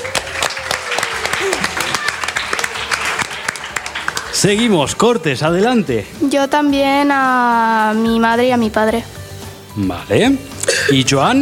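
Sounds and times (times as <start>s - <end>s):
audience applause: 0.0s - 5.3s
speech: 4.4s - 9.2s, 9.8s - 11.4s.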